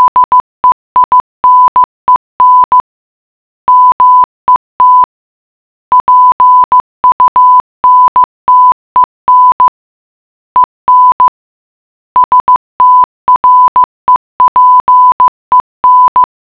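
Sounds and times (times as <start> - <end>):
morse code beeps: 0.0 - 2.8, 3.7 - 5.1, 5.9 - 9.8, 10.6 - 11.4, 12.2 - 16.3.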